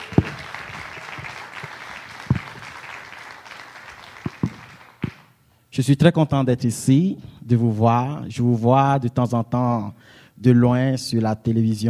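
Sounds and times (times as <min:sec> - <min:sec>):
church congregation applauding: 0:00.0 - 0:05.4
speech: 0:05.8 - 0:11.8.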